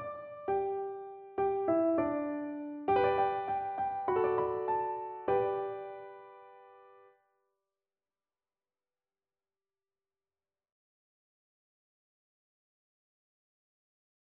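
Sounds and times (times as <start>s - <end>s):
piano duet: 0.0s - 7.1s.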